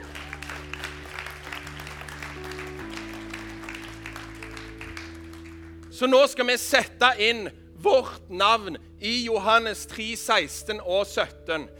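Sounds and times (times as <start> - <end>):
audience applause: 0.0 - 5.9
sustained low musical tones: 0.0 - 11.7
speech: 6.0 - 11.7.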